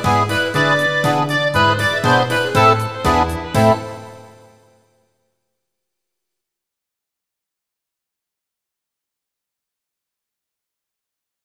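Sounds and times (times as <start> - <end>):
tango music: 0.0 - 4.7.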